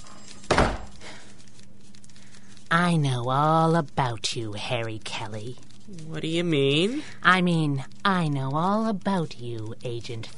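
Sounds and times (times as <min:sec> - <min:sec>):
door being shut: 0:00.5 - 0:00.9
speech: 0:02.7 - 0:10.3.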